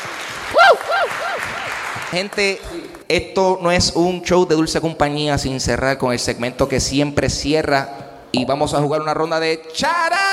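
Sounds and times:
audience applause: 0:00.0 - 0:03.0
speech: 0:02.1 - 0:10.3.

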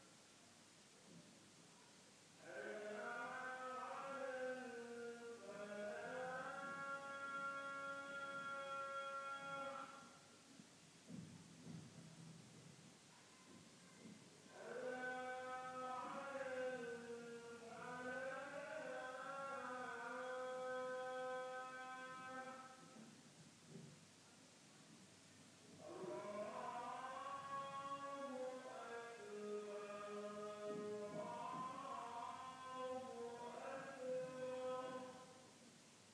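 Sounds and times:
call to prayer in Delhi: 0:01.9 - 0:10.4, 0:13.3 - 0:23.2, 0:25.7 - 0:35.6.

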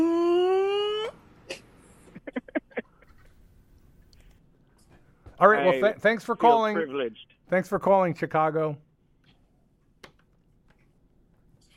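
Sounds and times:
man imitating a unicorn with a rising wail: 0:00.0 - 0:01.2
speech: 0:05.4 - 0:08.9.

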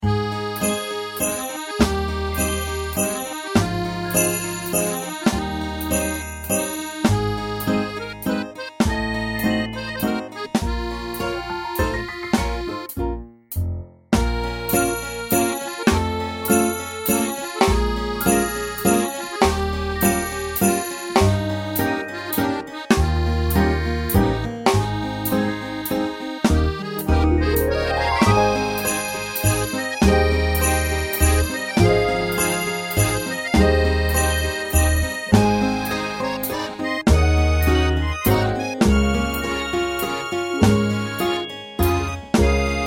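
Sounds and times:
waltz music: 0:00.0 - 0:13.3, 0:14.2 - 0:42.8.

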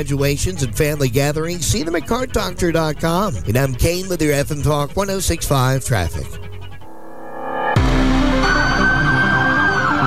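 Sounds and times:
speech: 0:00.0 - 0:06.4
emergency vehicle siren wailing: 0:06.8 - 0:10.0.

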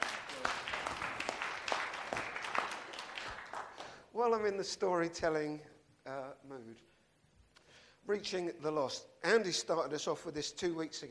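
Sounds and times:
crowd applauding in a room: 0:00.0 - 0:04.0
speech: 0:04.2 - 0:06.9, 0:08.0 - 0:11.0.

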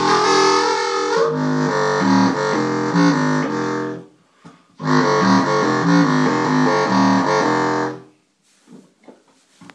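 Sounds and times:
contrabass clarinet through a 1x15 bass amp: 0:00.0 - 0:04.1, 0:04.8 - 0:08.1.

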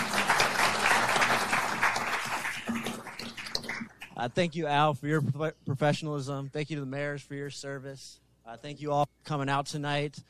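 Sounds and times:
crowd applauding: 0:00.0 - 0:04.2
speech: 0:04.2 - 0:10.2.

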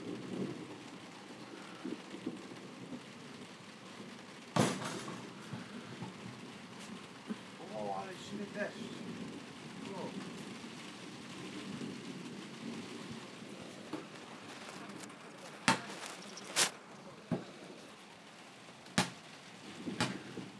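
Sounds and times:
faint hiss: 0:00.0 - 0:03.3, 0:04.4 - 0:20.5
ball bounced by a boy: 0:15.5 - 0:16.7, 0:19.0 - 0:19.2, 0:20.0 - 0:20.3.

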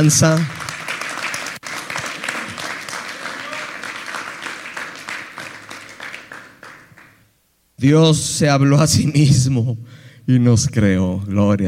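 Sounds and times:
speech: 0:00.0 - 0:00.6, 0:07.8 - 0:11.6
audience applause: 0:00.0 - 0:07.2.

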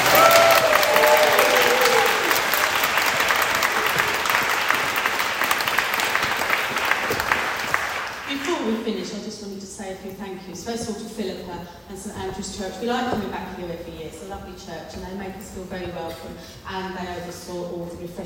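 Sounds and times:
audience applause: 0:00.0 - 0:08.5
speech: 0:11.6 - 0:18.2.

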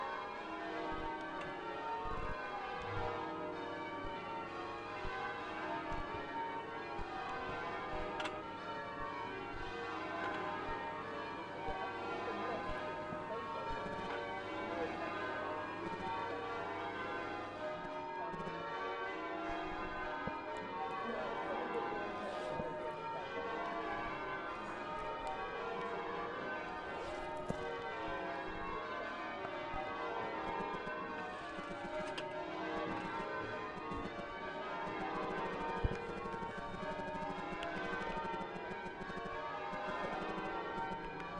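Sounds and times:
cathedral bells before an opening service: 0:00.0 - 0:41.3.

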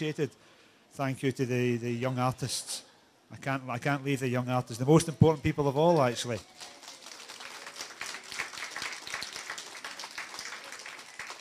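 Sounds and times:
speech: 0:00.0 - 0:06.8
applause: 0:05.3 - 0:11.3.

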